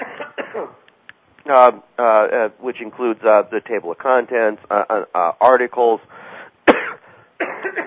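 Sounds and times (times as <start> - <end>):
person coughing: 0.0 - 0.8, 6.7 - 7.8
speech: 1.4 - 6.2.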